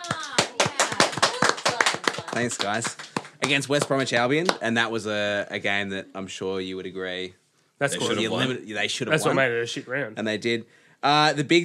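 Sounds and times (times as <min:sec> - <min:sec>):
studio audience clapping: 0:00.0 - 0:04.7
speech: 0:02.4 - 0:11.6.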